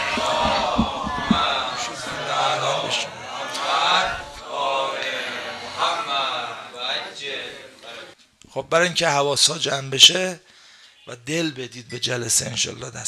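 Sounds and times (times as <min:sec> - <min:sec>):
crowd at a religious gathering loudly reciting the salawat blessing in unison: 0:00.0 - 0:08.2
speech: 0:08.6 - 0:10.5, 0:11.1 - 0:13.0.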